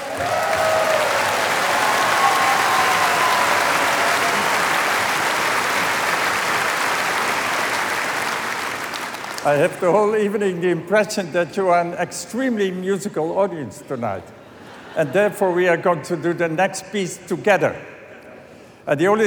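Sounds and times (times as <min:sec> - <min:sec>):
audience applause: 0:00.0 - 0:09.8
speech: 0:09.4 - 0:17.9, 0:18.9 - 0:19.2.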